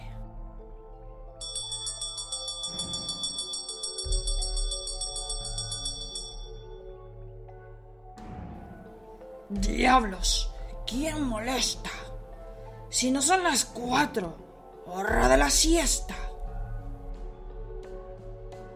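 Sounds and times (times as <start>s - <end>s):
doorbell ringing: 1.4s - 6.8s
speech: 9.5s - 12.0s, 12.9s - 16.3s.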